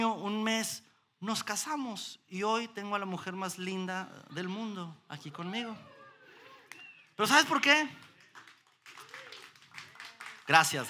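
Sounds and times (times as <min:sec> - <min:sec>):
speech: 0:00.0 - 0:05.9, 0:07.2 - 0:08.1, 0:10.5 - 0:10.8
applause: 0:06.7 - 0:10.8.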